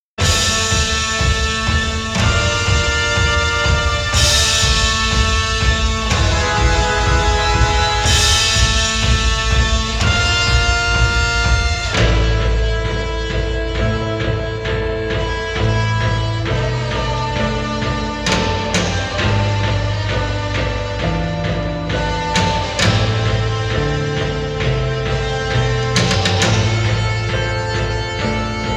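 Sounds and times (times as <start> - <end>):
instrumental title melody: 0.2 - 28.7.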